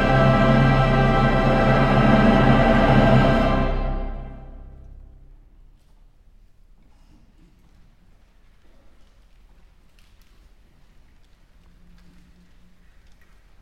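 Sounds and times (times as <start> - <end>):
SATB choir with orchestra: 0.0 - 5.5.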